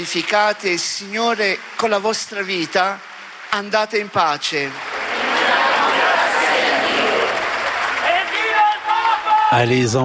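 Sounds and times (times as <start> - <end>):
speech: 0.0 - 4.9, 9.5 - 10.0
crowd applauding at end of papal mass: 0.0 - 9.9
murmur of voices: 5.0 - 8.9.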